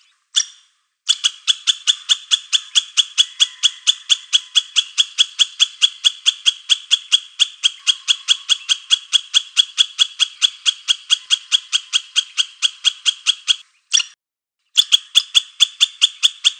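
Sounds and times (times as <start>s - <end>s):
squirrel giving rasping chatter notes: 0.4s - 14.2s, 14.8s - 16.5s.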